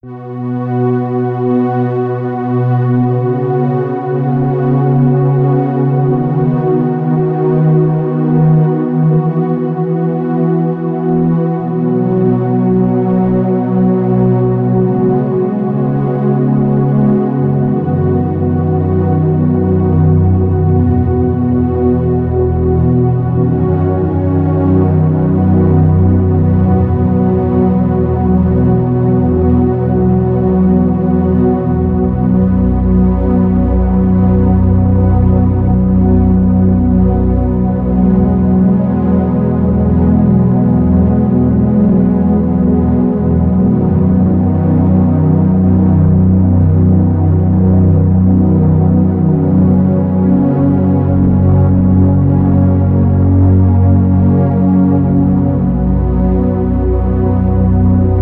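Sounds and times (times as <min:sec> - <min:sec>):
underscore synth pad: 0:00.0 - 0:58.1.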